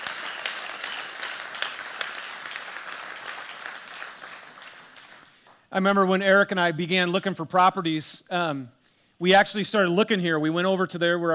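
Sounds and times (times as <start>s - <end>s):
crowd applause: 0.0s - 5.4s
speech: 5.7s - 11.3s.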